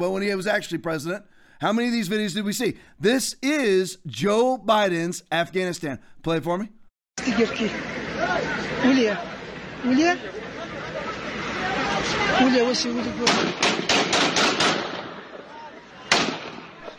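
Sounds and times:
speech: 0:00.0 - 0:10.4, 0:12.4 - 0:14.6
crowd chatter and shouting in a street in Afghanistan: 0:07.2 - 0:13.6, 0:15.0 - 0:16.9
AK-47 gunfire in a street video from Afghanistan: 0:13.2 - 0:15.3, 0:16.1 - 0:16.9.

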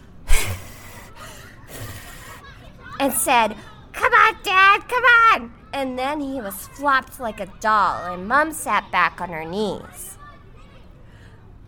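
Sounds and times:
person imitating mouth-to-mouth rescue breathing: 0:00.0 - 0:02.4
speech: 0:03.0 - 0:03.7, 0:04.4 - 0:10.1.

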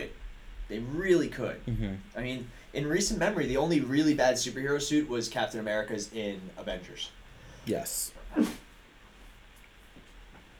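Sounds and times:
faint low noise: 0:00.0 - 0:10.5
speech: 0:00.7 - 0:08.5
stifled sneeze: 0:08.2 - 0:08.8.

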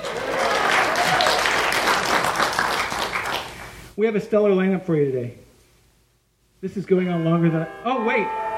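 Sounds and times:
audience applause at a movie screening event: 0:00.0 - 0:03.8
speech: 0:04.0 - 0:05.4, 0:06.6 - 0:08.4.

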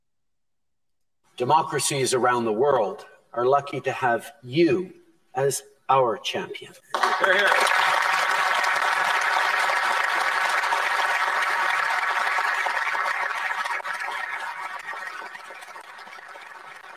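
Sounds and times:
speech: 0:01.4 - 0:07.8
applause: 0:06.9 - 0:16.9.

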